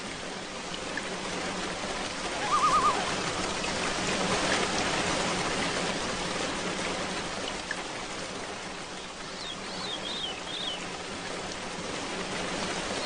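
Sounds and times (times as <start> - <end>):
torrential rain: 0.0 - 13.0.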